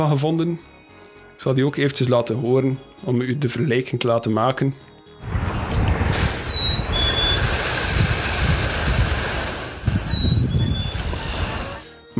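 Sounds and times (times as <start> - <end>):
speech: 0.0 - 0.7, 1.4 - 5.4
rushing wind-like noise: 5.2 - 11.8
chickadee whistling a two-note call: 6.2 - 7.6, 9.8 - 11.8.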